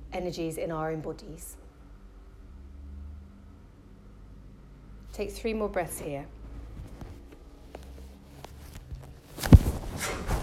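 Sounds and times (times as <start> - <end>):
speech: 0.2 - 1.6, 5.2 - 6.4
quiet shuffling: 6.4 - 10.4.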